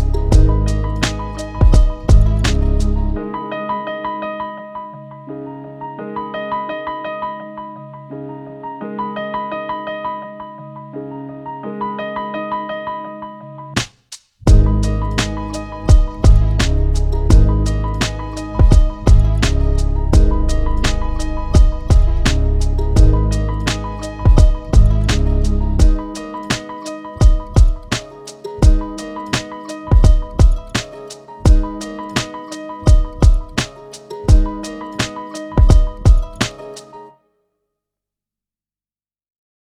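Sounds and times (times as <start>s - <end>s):
classical hip hop instrumental: 0.0s - 4.0s, 13.8s - 37.1s.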